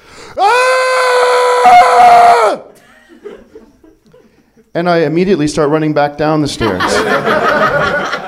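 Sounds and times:
person screaming imitating a beastly lion-like roar: 0.4 - 2.7
laughter: 2.8 - 4.7, 6.6 - 8.2
speech: 4.8 - 8.2.

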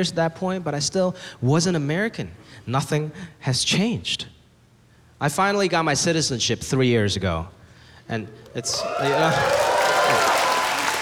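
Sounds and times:
speech: 0.0 - 4.3, 5.2 - 10.2
audience clapping: 8.3 - 11.0.

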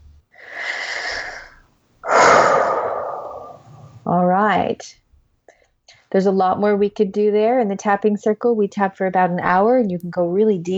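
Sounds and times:
long airy breaths during a tapping exercise: 0.4 - 4.0
speech: 4.2 - 5.0, 6.1 - 10.7.

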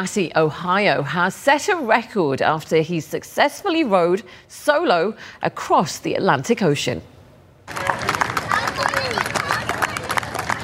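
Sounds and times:
speech: 0.0 - 8.0
excited voices and chatter: 7.7 - 10.6
welcoming crowd clapping and cheering: 7.7 - 10.6.

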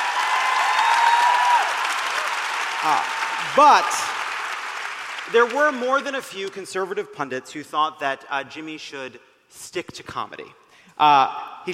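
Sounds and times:
audience applause: 0.0 - 6.6
speech: 2.8 - 4.1, 5.2 - 11.7.

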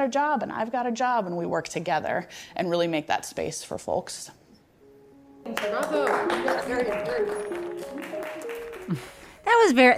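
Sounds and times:
speech: 0.0 - 4.4, 5.4 - 9.9
audience clapping: 5.5 - 9.4.

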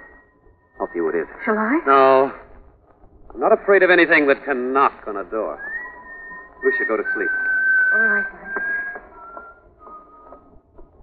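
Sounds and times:
whistle: 0.0 - 1.9, 5.2 - 11.0
speech: 0.9 - 2.4, 3.4 - 5.8, 6.6 - 8.7.

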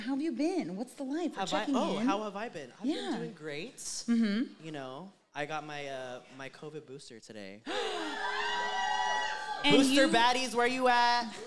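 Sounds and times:
speech: 0.0 - 8.8, 9.6 - 11.4
audience cheering and whooping: 7.7 - 10.2.

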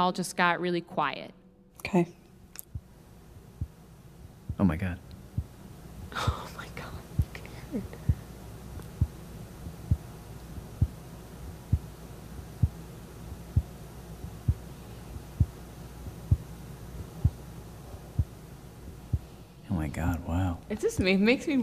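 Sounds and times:
speech: 0.0 - 2.2, 4.6 - 5.1, 6.1 - 6.5, 7.7 - 8.0, 19.8 - 21.6
faint constant hum: 0.0 - 21.6
heartbeat recorded with chest against microphone: 2.7 - 18.4, 19.0 - 19.3.

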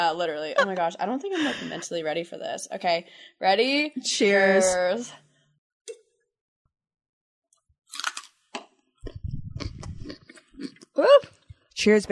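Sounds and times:
speech: 0.0 - 5.3, 10.6 - 12.1
crunching on a raw carrot: 7.9 - 11.0.

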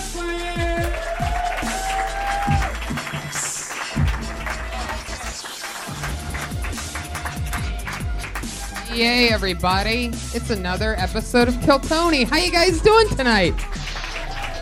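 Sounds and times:
comedy club audience at the Comedy Store applauding and cheering: 0.0 - 9.4, 12.4 - 14.6
heavy pounding bass beat: 0.0 - 14.6
speech: 9.0 - 13.8.

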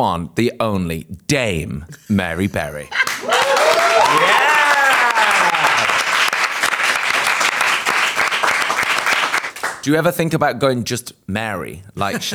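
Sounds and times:
speech: 0.0 - 3.4, 9.8 - 12.3
laughter: 1.9 - 7.7, 12.0 - 12.3
audience applause: 2.9 - 9.9.

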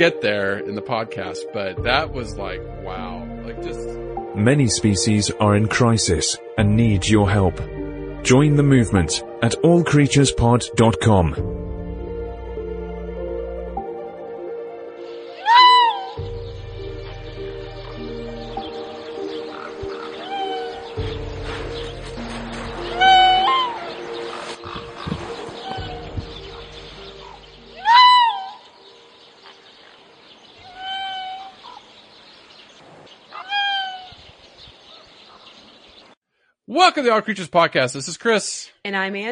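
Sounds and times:
speech: 0.0 - 11.8, 37.0 - 39.3
canid calls resembling cat meows: 15.3 - 16.2, 19.3 - 21.0, 22.8 - 24.0, 24.6 - 26.6, 27.2 - 28.8, 30.6 - 31.9, 33.3 - 34.2.

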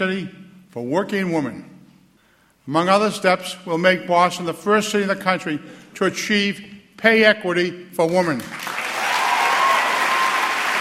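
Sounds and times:
speech: 0.0 - 1.7, 2.6 - 8.7
standing audience applause for Boston mayor Menino's pledge in a city address: 8.5 - 10.8.

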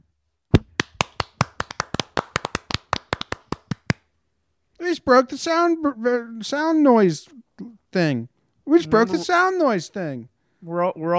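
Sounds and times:
sharp hand claps: 0.6 - 4.1
speech: 4.9 - 11.1.

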